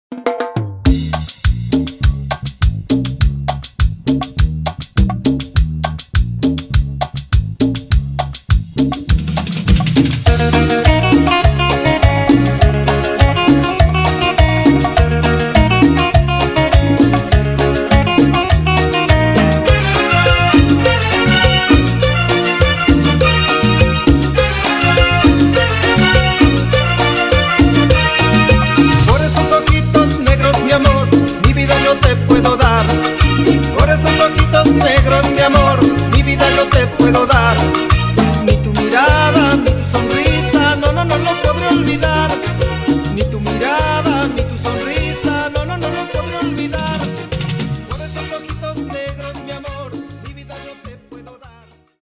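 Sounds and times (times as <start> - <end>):
extended cumbia music: 0.1 - 52.0.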